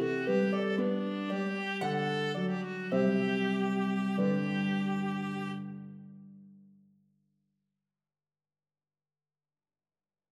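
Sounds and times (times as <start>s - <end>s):
viola and harp duet: 0.0s - 6.1s.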